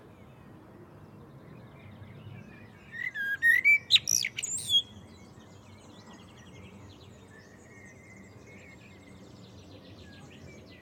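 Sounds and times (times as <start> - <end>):
common blackbird song: 1.6 - 10.8.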